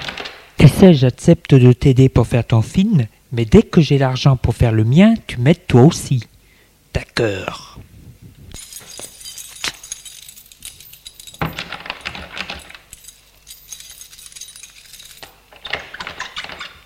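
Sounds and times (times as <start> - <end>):
speech: 0.8 - 6.3, 7.0 - 7.8
keys jingling as a door is locked: 8.5 - 16.8.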